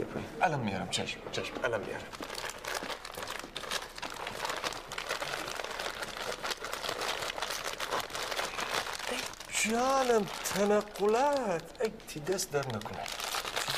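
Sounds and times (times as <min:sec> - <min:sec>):
speech: 0:00.0 - 0:02.5, 0:09.6 - 0:13.2
gift wrapping paper crinkling as a present is unwrapped: 0:02.0 - 0:13.7
wrapping paper tearing and crumpling: 0:02.4 - 0:11.6, 0:12.6 - 0:13.7.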